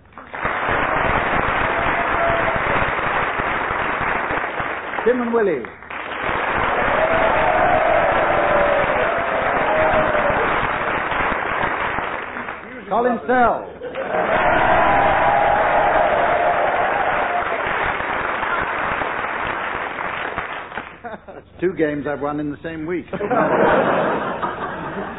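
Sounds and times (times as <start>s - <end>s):
audience applause: 0.0s - 12.8s, 13.8s - 21.0s
speech: 5.0s - 5.8s, 12.9s - 14.2s, 21.6s - 24.4s
laughter: 13.8s - 14.7s, 21.0s - 21.6s, 23.1s - 25.1s.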